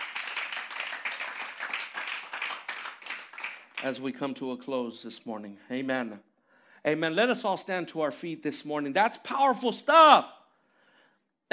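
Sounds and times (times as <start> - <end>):
audience applause: 0.0 - 3.8
speech: 3.8 - 10.4.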